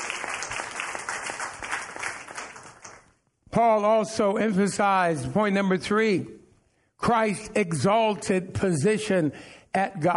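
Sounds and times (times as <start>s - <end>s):
audience clapping: 0.0s - 3.3s
speech: 3.6s - 6.4s, 7.0s - 10.1s.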